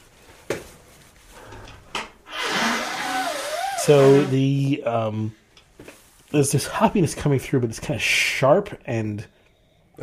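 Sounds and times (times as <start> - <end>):
nose blowing: 2.3 - 4.5
speech: 3.9 - 9.4.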